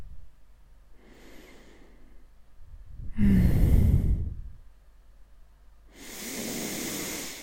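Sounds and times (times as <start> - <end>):
slow deep breathing in and out: 0.9 - 4.6, 5.9 - 7.4.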